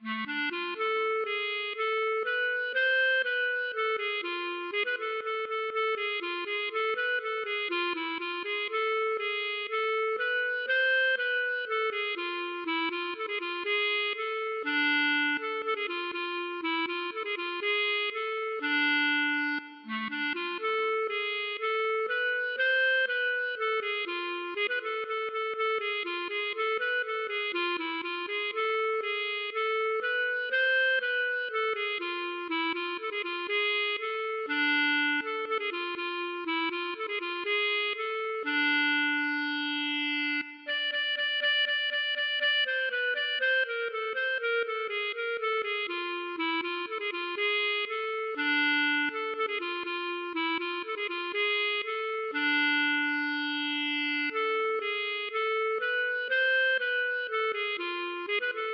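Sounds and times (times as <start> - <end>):
klezmer music: 0.0 - 58.7.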